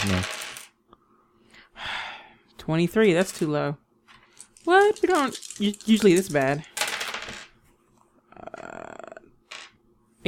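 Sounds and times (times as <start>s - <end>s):
speech: 0.0s - 0.4s, 2.6s - 3.8s, 4.6s - 6.7s
dice rolling on a table: 0.0s - 0.8s, 4.1s - 7.6s, 9.4s - 9.8s.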